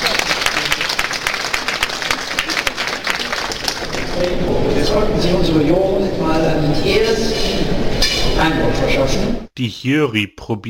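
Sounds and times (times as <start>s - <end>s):
audience applause: 0.0s - 4.5s
speech: 4.2s - 10.6s.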